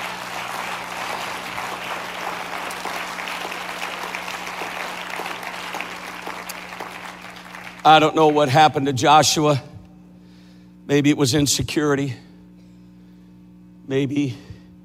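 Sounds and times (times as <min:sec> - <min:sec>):
audience clapping: 0:00.0 - 0:08.7
speech: 0:07.8 - 0:09.7, 0:10.9 - 0:12.2, 0:13.9 - 0:14.5.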